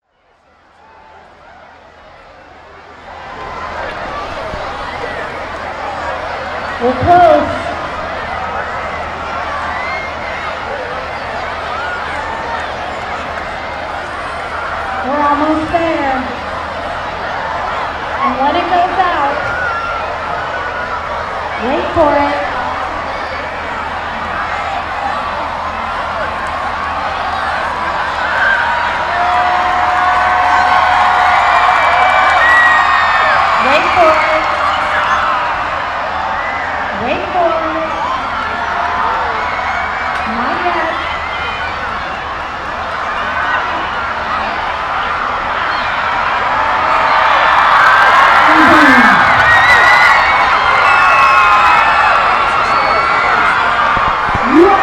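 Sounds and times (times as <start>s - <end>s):
crowd cheering at solar eclipse totality: 0.0s - 54.8s.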